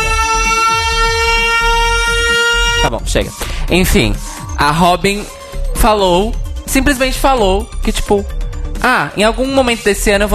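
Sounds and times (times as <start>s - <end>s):
siren sound effect: 0.0s - 3.0s
speech: 2.8s - 10.3s.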